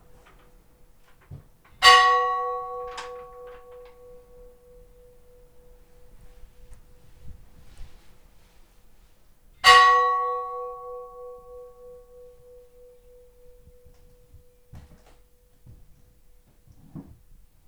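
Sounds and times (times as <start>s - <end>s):
Oddakirkja funeral church bells ringing: 1.7s - 7.4s, 9.6s - 15.7s.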